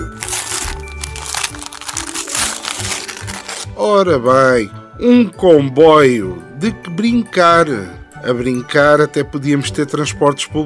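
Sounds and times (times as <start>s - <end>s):
gift paper crinkling and tearing as a gift is unwrapped: 0.0s - 3.7s
speech: 3.8s - 10.6s.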